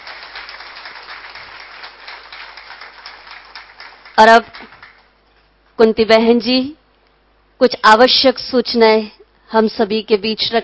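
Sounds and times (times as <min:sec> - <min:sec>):
audience applause: 0:00.0 - 0:05.1
speech: 0:04.2 - 0:04.7, 0:05.8 - 0:06.8, 0:07.6 - 0:10.6.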